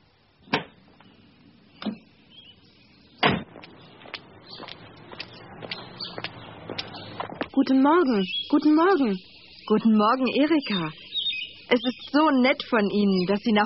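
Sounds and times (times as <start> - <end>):
car pulling up with a low rumble: 0.8 - 7.6
heavy door-like thuds: 3.2 - 3.6
speech: 7.6 - 11.0, 11.7 - 13.6.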